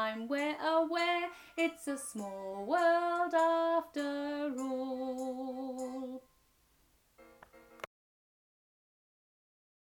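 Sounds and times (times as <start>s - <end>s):
vocals: 0.0s - 6.4s.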